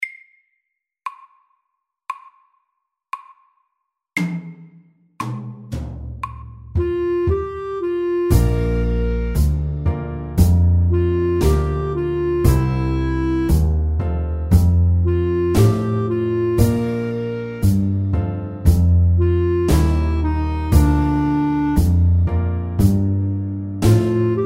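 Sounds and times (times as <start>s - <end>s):
slow blues: 6.8s - 24.4s.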